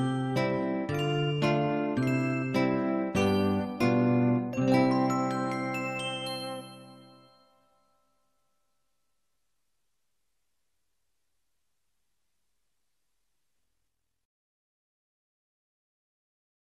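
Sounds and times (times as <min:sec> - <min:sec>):
nursery rhyme karaoke music: 0:00.0 - 0:07.2.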